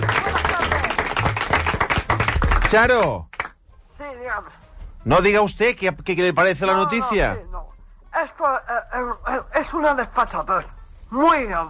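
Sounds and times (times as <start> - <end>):
talk show audience clapping: 0.0 - 3.6
speech: 2.7 - 3.3, 4.2 - 11.6.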